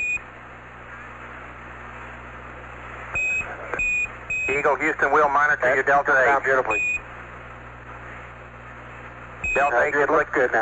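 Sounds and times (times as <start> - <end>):
steady radio hiss: 0.0 - 10.5
spacecraft cockpit alarm beeping: 3.2 - 4.6, 6.7 - 7.0, 9.4 - 9.8
speech: 4.5 - 7.0, 9.6 - 10.5.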